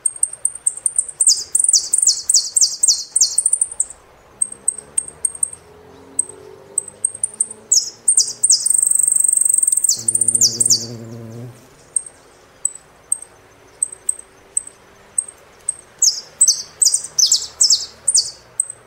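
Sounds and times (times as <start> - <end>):
Saffron finch song with high chips and buzzy descending sweeps: 0.1 - 18.7.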